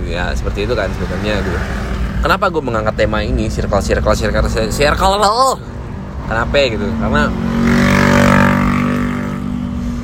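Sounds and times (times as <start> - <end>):
car engine drone and road noise inside a moving car: 0.0 - 10.0
speech: 0.1 - 5.7, 6.3 - 7.8.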